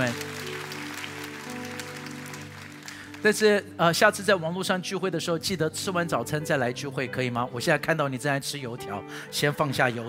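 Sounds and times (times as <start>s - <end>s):
crowd applause: 0.0s - 3.3s
speech: 3.2s - 10.0s.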